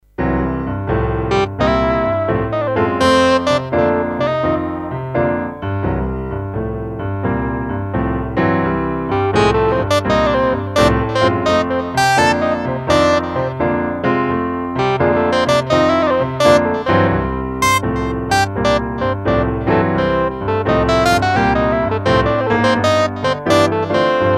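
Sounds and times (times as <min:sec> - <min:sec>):
blues music: 0:00.2 - 0:24.3.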